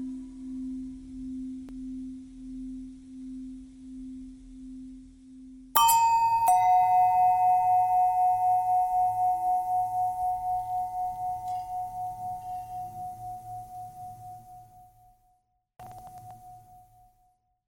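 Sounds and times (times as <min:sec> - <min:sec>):
long bell tone bending: 0:05.8 - 0:15.2.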